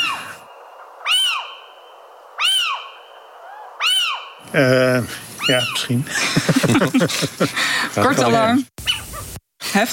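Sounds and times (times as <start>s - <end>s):
owl excitement duet chattering calls: 0.0s - 4.5s, 5.4s - 6.0s
speech: 4.5s - 8.9s, 9.8s - 9.9s
laughter: 6.1s - 8.6s.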